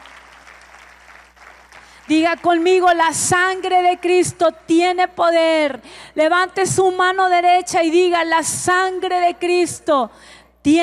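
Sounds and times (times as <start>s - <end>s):
audience applause: 0.0s - 4.2s
speech: 2.1s - 10.8s.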